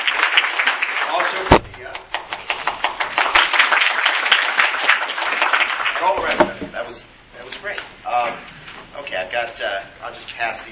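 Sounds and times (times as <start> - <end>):
round of applause from a group: 0.0 - 6.2
speech: 9.2 - 10.7.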